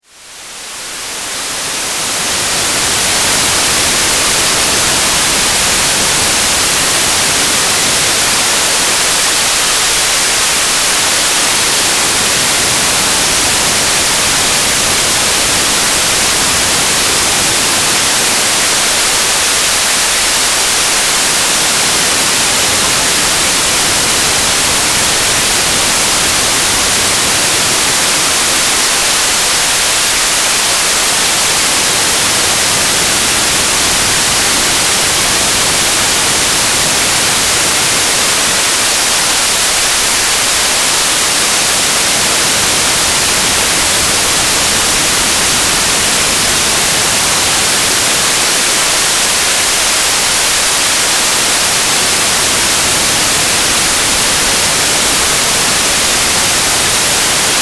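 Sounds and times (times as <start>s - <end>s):
white noise: 0.0s - 57.5s.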